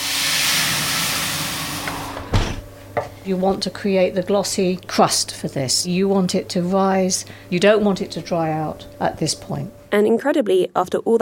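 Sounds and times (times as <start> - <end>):
water hissing into hot oven with steam: 0.0 - 2.4
speech: 3.2 - 11.2.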